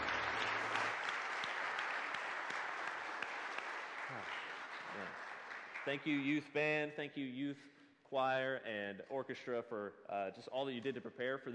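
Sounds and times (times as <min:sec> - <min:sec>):
audience applause: 0:00.0 - 0:06.4
speech: 0:04.1 - 0:05.2, 0:05.8 - 0:11.5.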